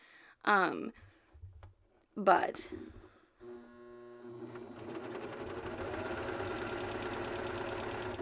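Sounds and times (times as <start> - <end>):
speech: 0.4 - 1.1, 2.2 - 3.0
Ovation sewing machine stitching a waistband on children's leggings: 3.4 - 8.2.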